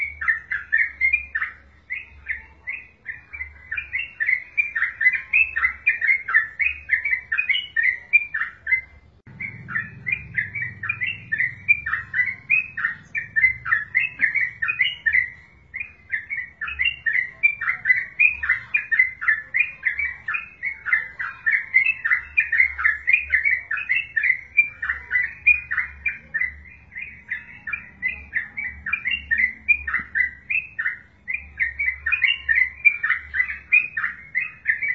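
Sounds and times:
wild yellow-vented bulbul chattering: 0.0s - 34.9s.

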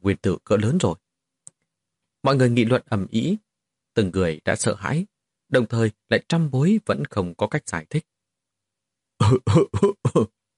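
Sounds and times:
speech: 0.0s - 1.0s, 2.2s - 3.4s, 4.0s - 8.1s, 9.2s - 10.4s
light cough: 9.2s - 10.3s.

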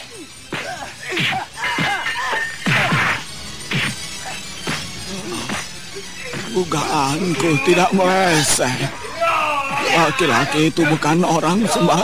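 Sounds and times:
laughter: 0.0s - 3.3s, 5.4s - 12.0s
swords clashing against a mindi tree branch hardened like steel: 0.5s - 4.0s
speech: 6.5s - 9.0s, 9.9s - 12.0s.

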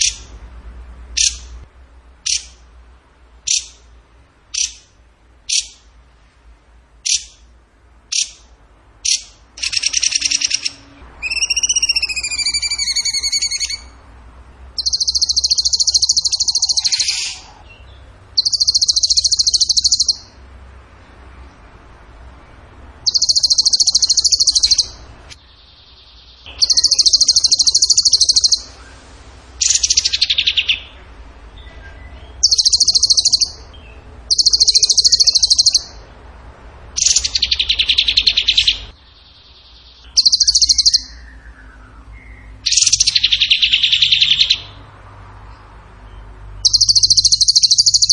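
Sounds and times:
bird song with rattling trills: 1.2s - 1.6s, 2.2s - 2.6s, 3.4s - 3.8s, 4.5s - 5.9s, 7.0s - 7.5s, 8.1s - 14.0s, 14.6s - 20.4s, 23.0s - 36.0s, 37.0s - 48.1s.

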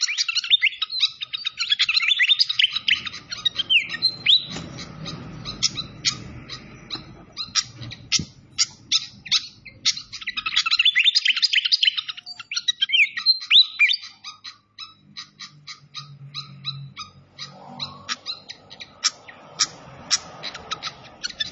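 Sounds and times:
Malaysian pied fantail song: 0.3s - 21.5s.

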